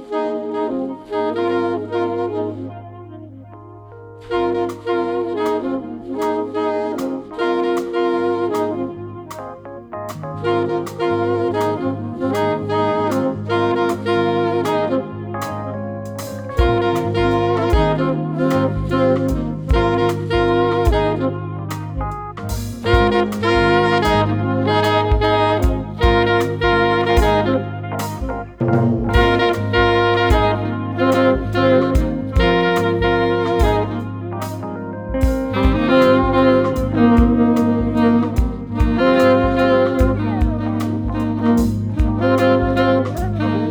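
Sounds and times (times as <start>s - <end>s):
slow jam music: 0.1s - 43.6s.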